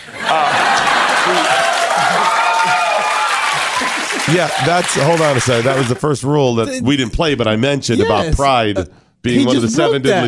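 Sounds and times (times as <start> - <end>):
audience applause: 0.0 - 6.0
laughter: 0.0 - 6.0
faint voices and cheers: 0.3 - 6.0
speech: 4.3 - 10.2.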